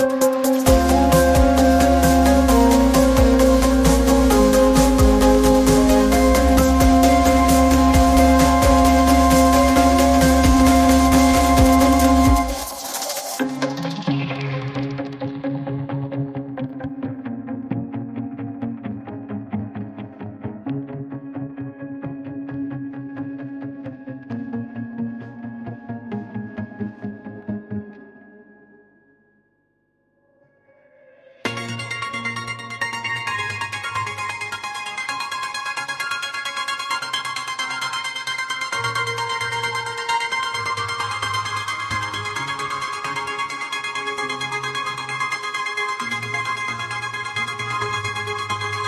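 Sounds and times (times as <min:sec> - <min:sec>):
background music: 0:00.0 - 0:29.4, 0:31.2 - 0:48.8.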